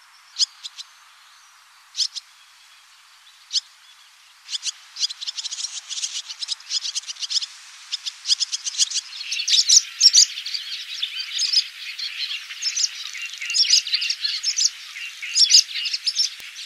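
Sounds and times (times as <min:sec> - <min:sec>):
swallow twittering: 0:04.5 - 0:16.6.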